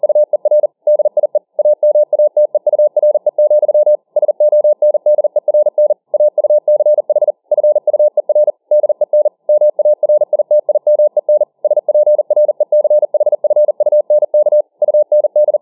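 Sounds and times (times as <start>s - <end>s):
Morse code at 40 words per minute: 0.0s - 15.6s.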